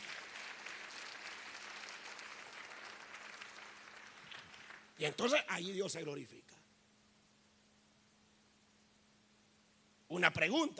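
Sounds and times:
audience clapping: 0.0 - 5.0
speech: 5.0 - 6.6, 10.2 - 10.7.

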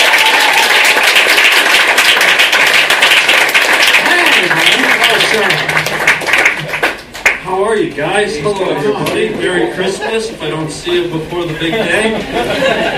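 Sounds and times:
audience applause: 0.0 - 7.4
speech: 8.2 - 12.9
laughter: 11.6 - 12.9.

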